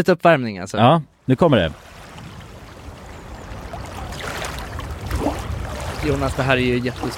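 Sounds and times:
speech: 0:00.0 - 0:01.9, 0:06.0 - 0:07.1
roar of sea water: 0:01.6 - 0:07.1.

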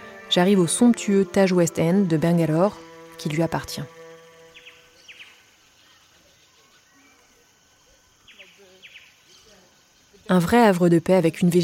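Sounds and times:
jungle birds chirping: 0:00.0 - 0:10.8
speech: 0:00.4 - 0:04.0, 0:10.3 - 0:11.6
faint murmur of ambience: 0:04.9 - 0:10.8.

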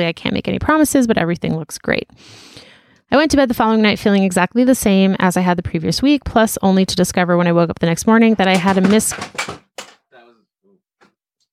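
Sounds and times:
speech: 0:00.0 - 0:09.6
unlit candle knocked over on a desk: 0:08.3 - 0:10.1
soft voiced sounds: 0:10.1 - 0:10.5.

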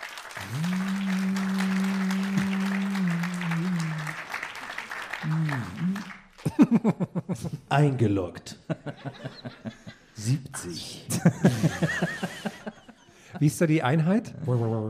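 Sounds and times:
audience clapping: 0:00.0 - 0:07.2
steady low tone humming: 0:00.4 - 0:04.2
laughter: 0:00.4 - 0:07.7, 0:08.6 - 0:10.2, 0:11.1 - 0:13.6
speech: 0:06.7 - 0:12.2, 0:13.4 - 0:14.8.

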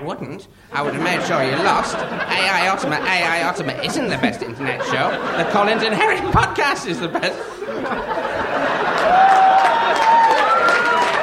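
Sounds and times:
speech: 0:00.0 - 0:08.2
laughter: 0:00.7 - 0:11.2
audience clapping: 0:08.5 - 0:11.2.

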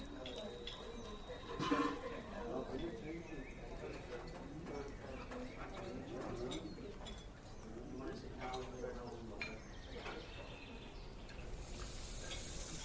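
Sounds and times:
bright clink: 0:00.0 - 0:04.8
murmur of overlapping voices in a fantasy fairy cafe: 0:00.0 - 0:12.8
soft airy hiss: 0:11.4 - 0:12.8.

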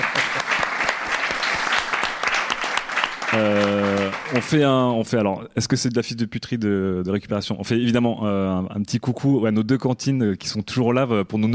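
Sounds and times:
room full of people clapping: 0:00.0 - 0:04.9
speech: 0:03.3 - 0:03.7, 0:04.3 - 0:11.5.

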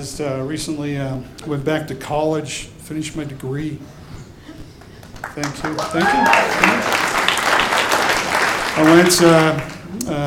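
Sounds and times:
speech: 0:00.0 - 0:04.0, 0:05.4 - 0:06.9, 0:08.8 - 0:10.2
audience applause: 0:05.0 - 0:09.9.

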